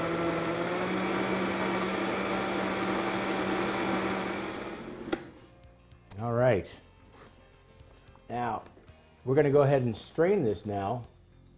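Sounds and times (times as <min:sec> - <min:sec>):
blender pureeing hot liquid: 0:00.0 - 0:05.4
speech: 0:06.6 - 0:06.8, 0:08.3 - 0:11.1.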